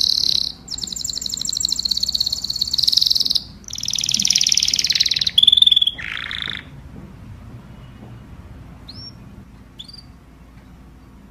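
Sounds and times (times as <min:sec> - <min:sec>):
canary song of rapid trills: 0:00.0 - 0:06.8, 0:08.8 - 0:10.3.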